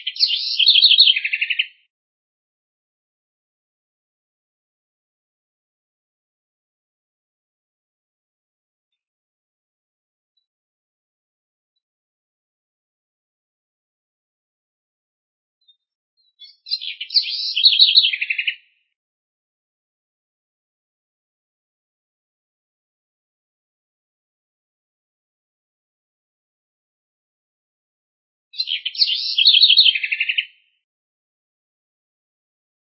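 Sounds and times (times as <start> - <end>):
house wren singing: 0.0 - 1.8, 15.6 - 18.6, 28.6 - 30.6.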